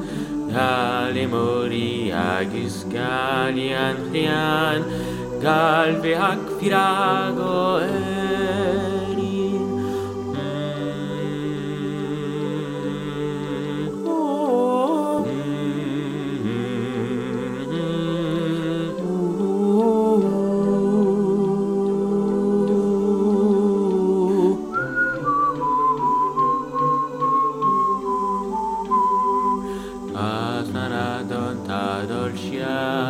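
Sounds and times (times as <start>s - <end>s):
high alto voices singing: 0.0s - 33.0s.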